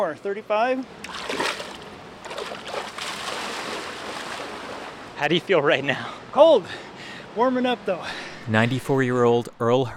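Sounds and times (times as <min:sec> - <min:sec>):
speech: 0:00.0 - 0:01.5, 0:05.2 - 0:09.9
river water trickling and rippling: 0:00.9 - 0:05.8
water splashing and sloshing as a man wades into a shallow river: 0:01.0 - 0:05.2.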